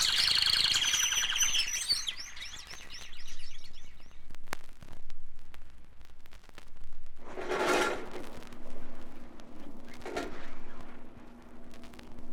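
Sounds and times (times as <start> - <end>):
canary trilling: 0.0 - 4.2
low rumbling noise: 0.0 - 12.3.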